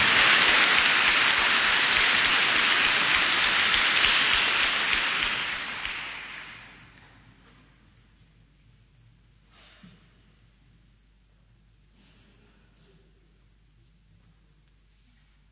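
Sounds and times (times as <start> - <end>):
crowd applauding for the young people: 0.0 - 6.9.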